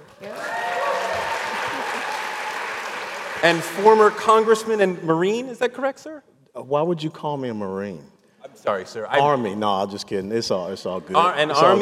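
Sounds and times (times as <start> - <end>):
audience applause: 0.0 - 4.8
speech: 3.4 - 11.8.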